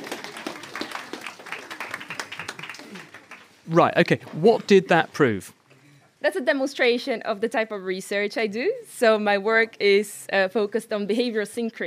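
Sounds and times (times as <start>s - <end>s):
audience round of applause: 0.0s - 4.2s
speech: 3.7s - 5.6s, 6.2s - 11.8s.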